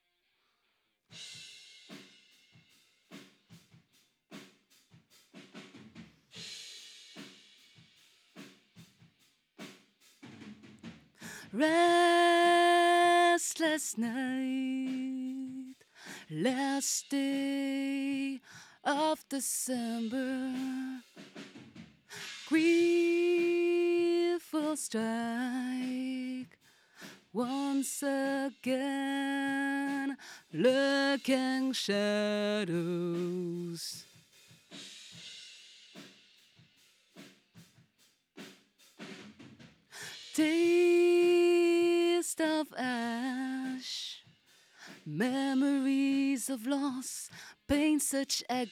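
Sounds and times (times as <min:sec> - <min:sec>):
vocals: 0:11.2 - 0:21.4, 0:22.1 - 0:34.3, 0:39.9 - 0:48.7.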